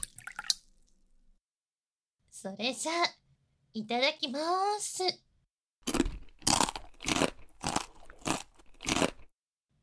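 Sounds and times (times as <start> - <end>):
speech: 2.4 - 5.3
Japanese pickles crunching while chewed: 5.9 - 9.3.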